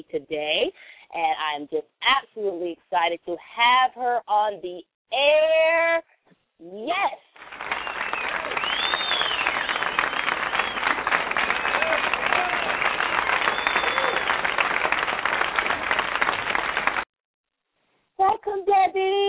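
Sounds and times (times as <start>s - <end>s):
speech: 0.0s - 7.7s, 18.2s - 19.2s
crowd cheering and applause sound effect: 7.4s - 17.1s.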